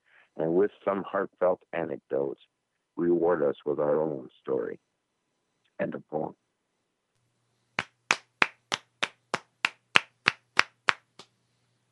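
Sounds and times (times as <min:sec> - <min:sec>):
speech: 0:00.4 - 0:04.9, 0:05.8 - 0:06.4
single person clapping in a steady rhythm: 0:07.8 - 0:11.3.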